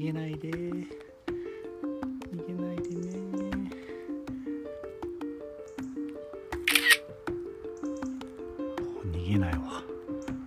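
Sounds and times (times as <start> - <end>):
speech: 0.0 - 1.1
soft repeating melodic tone: 0.0 - 10.4
camera shutter clicking taking time-lapse photos: 6.6 - 7.0.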